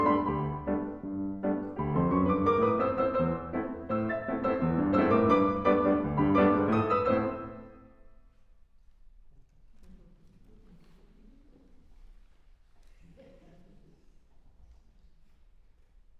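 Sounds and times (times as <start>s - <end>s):
piano duet allegro: 0.0s - 8.1s.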